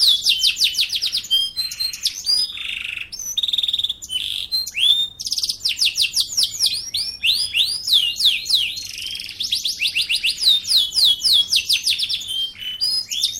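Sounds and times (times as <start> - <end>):
bird singing: 0.0 - 13.3.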